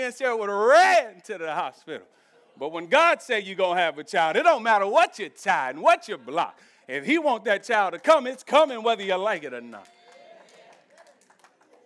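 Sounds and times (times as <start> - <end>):
speech: 0.0 - 10.0
audience clapping: 7.7 - 8.7, 9.6 - 11.8.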